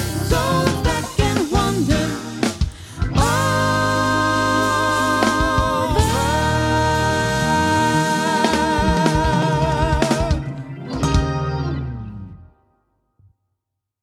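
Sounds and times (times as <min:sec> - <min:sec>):
soprano and tenor voices: 0:00.2 - 0:02.4, 0:03.1 - 0:11.9.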